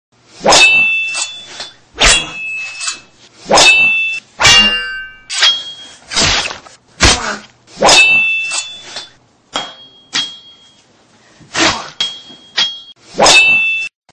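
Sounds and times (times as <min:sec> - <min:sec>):
sword: 0:00.3 - 0:10.6, 0:11.5 - 0:13.9.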